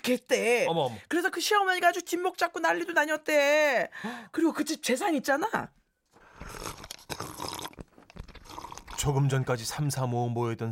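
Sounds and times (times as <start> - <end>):
speech: 0.0 - 5.8, 9.0 - 10.7
slurping the last of sikhye rice drink: 6.2 - 9.4.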